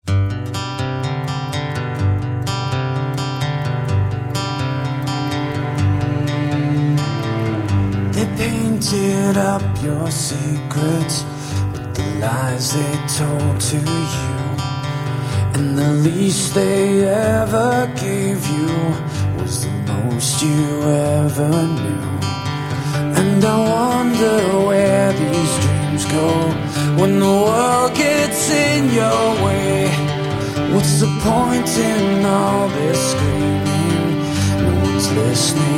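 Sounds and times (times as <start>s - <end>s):
acoustic music: 0.0s - 35.7s.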